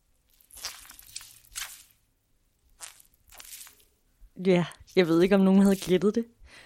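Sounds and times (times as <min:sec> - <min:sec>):
natural sea sponge bath sponge squished: 0:00.3 - 0:02.0, 0:02.7 - 0:03.9, 0:04.8 - 0:06.1
speech: 0:04.4 - 0:06.4.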